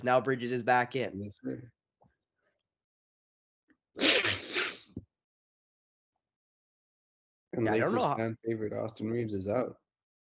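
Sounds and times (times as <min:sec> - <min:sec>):
speech: 0:00.0 - 0:01.8, 0:04.0 - 0:04.2, 0:07.6 - 0:09.8
congested nasal sniffle: 0:04.0 - 0:05.0.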